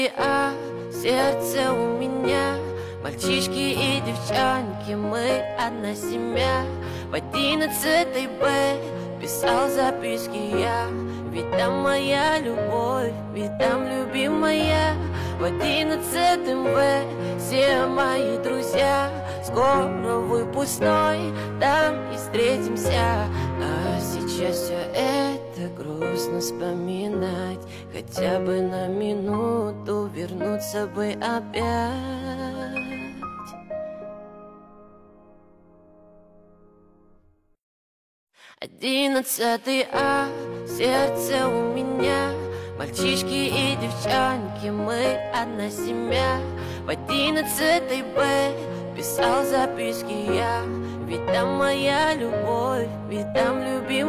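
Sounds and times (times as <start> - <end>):
piano music: 0.2 - 37.3, 39.9 - 54.0.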